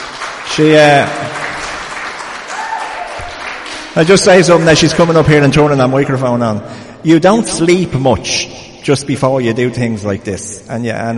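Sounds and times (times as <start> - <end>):
audience applause: 0.0 - 4.8
speech: 0.6 - 1.3, 4.0 - 11.1.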